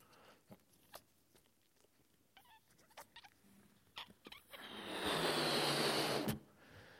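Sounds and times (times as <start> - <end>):
breath blowing up a balloon: 4.6 - 6.5.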